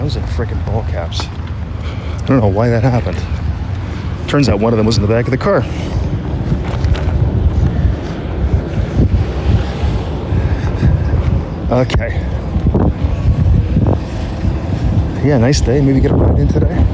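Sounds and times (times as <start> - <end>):
breeze buffeting the microphone: 0.0 - 16.9
speech: 0.1 - 3.4, 4.3 - 6.0, 11.7 - 13.0, 15.2 - 16.9.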